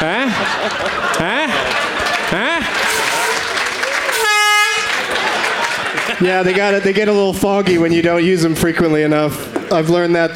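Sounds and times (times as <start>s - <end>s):
laughter: 0.0s - 8.3s
people chattering: 0.0s - 10.3s
speech: 0.6s - 1.3s, 6.2s - 10.3s
air horn blast: 2.8s - 5.0s.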